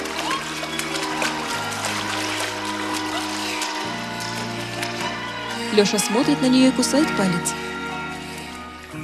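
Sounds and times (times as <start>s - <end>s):
person diving and splashing in a lake: 0.0s - 9.0s
speech: 5.8s - 7.7s.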